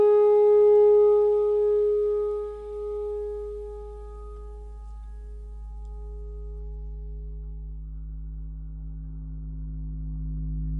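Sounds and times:
pentatonic clarinet notes: 0.0s - 6.7s.

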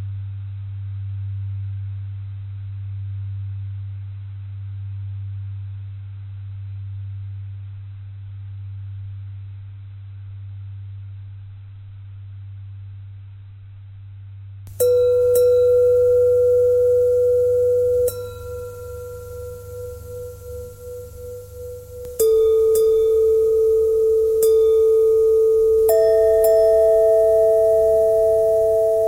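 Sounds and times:
bending bell tone: 14.7s - 29.0s.

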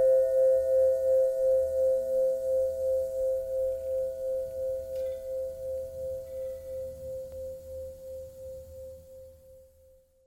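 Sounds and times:
long bell ringing: 0.0s - 8.0s.

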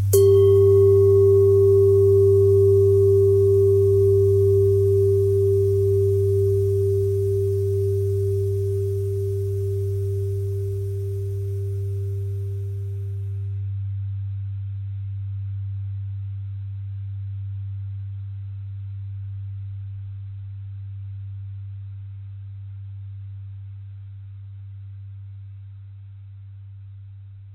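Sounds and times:
bells ringing: 0.1s - 12.8s.

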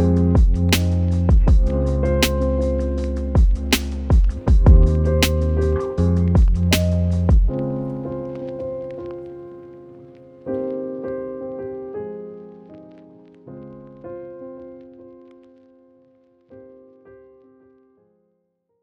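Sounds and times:
lo-fi hip hop piano: 0.0s - 17.4s.

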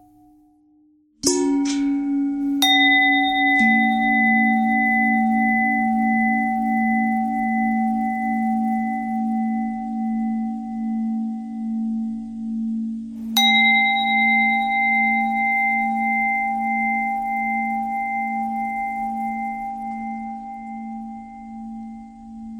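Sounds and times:
long bell bend threads: 1.2s - 22.5s.

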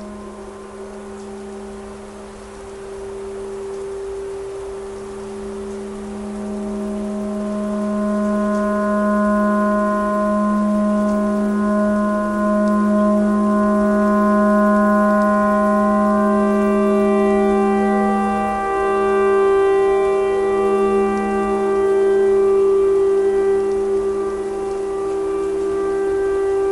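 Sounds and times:
clarinet imitating a tornado siren: 5.8s - 26.7s.

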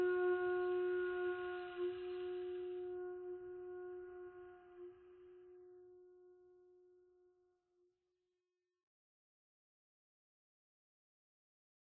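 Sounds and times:
bagpipe: 0.0s - 7.2s.

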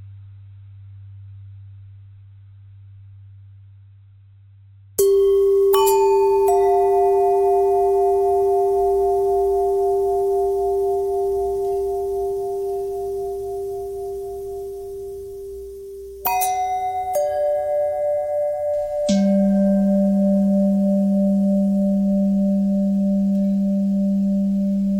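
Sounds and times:
long ringing bells: 5.0s - 24.9s.

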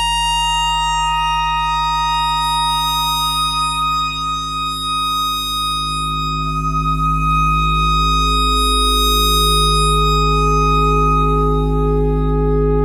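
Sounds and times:
simple clarinet notes: 0.0s - 12.7s.

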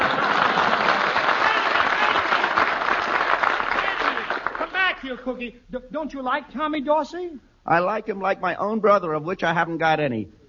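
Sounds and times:
large studio audience applause: 0.0s - 5.0s
speech: 5.2s - 10.4s.

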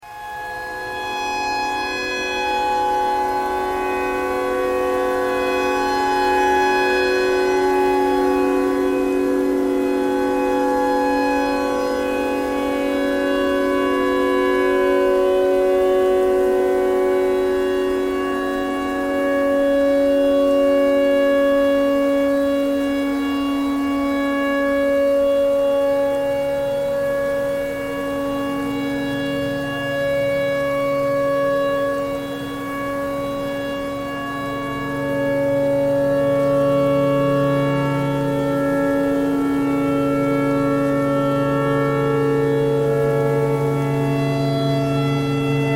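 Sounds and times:
tornado siren: 0.0s - 45.7s.

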